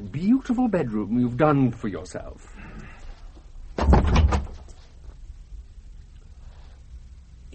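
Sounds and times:
speech: 0.1s - 2.6s
wooden door opening rattle and clunk: 3.8s - 4.6s.

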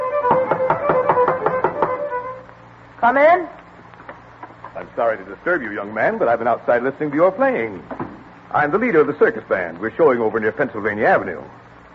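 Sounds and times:
knocking on a door: 0.3s - 2.0s, 7.9s - 8.2s
speech: 3.0s - 3.6s, 4.9s - 11.6s.

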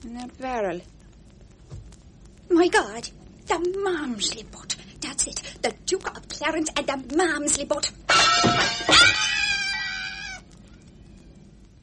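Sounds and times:
speech: 0.0s - 1.0s, 2.5s - 9.5s
cat meowing: 8.1s - 10.5s.

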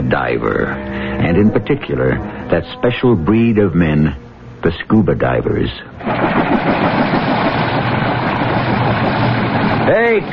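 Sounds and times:
speech: 0.1s - 7.3s, 9.9s - 10.3s
helicopter engine idling: 6.0s - 10.3s.

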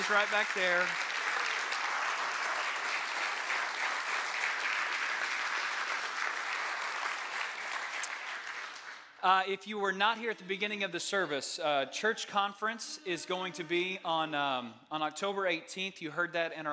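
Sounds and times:
audience applause: 0.0s - 9.2s
speech: 0.1s - 1.0s, 9.2s - 16.7s.

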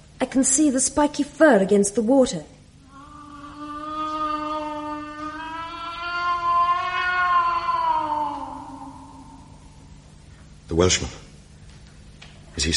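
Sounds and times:
speech: 0.2s - 2.6s, 10.8s - 11.2s, 12.6s - 12.7s
cat yowling: 2.9s - 9.8s.

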